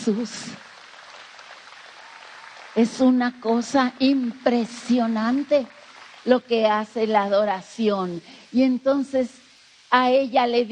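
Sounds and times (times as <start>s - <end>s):
speech: 0.0s - 0.7s, 2.8s - 10.6s
audience applause: 0.0s - 6.3s.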